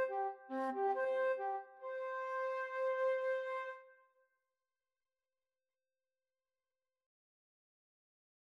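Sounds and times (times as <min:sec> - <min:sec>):
flute duet: 0:00.0 - 0:03.8.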